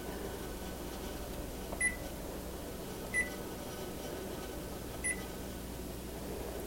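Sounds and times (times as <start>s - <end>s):
low steady hum: 0.0s - 6.6s
oven control panel beeps while setting preheat temperature to 325: 1.8s - 2.0s, 3.1s - 3.4s, 5.0s - 5.3s.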